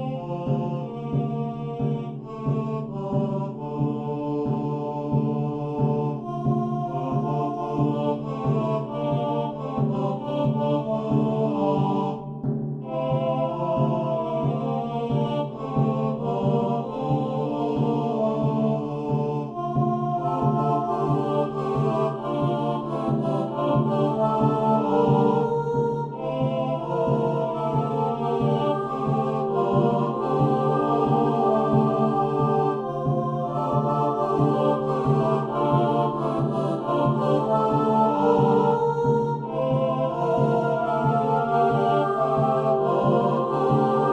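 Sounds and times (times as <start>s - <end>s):
night song: 0.1s - 44.1s.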